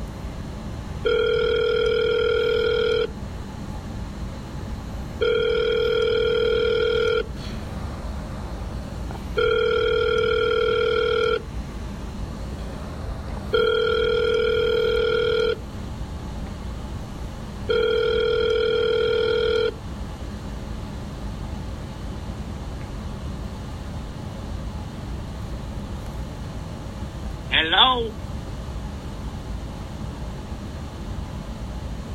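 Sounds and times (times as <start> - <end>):
low hum: 0.0 - 32.1
phone ringback tones on an outgoing call: 1.0 - 3.1, 5.2 - 7.3, 9.4 - 11.4, 13.5 - 15.6, 17.7 - 19.8.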